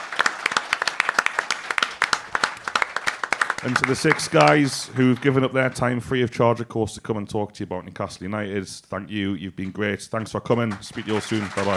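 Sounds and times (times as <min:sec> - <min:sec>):
audience applause: 0:00.0 - 0:06.0, 0:10.7 - 0:11.7
speech: 0:03.6 - 0:11.7.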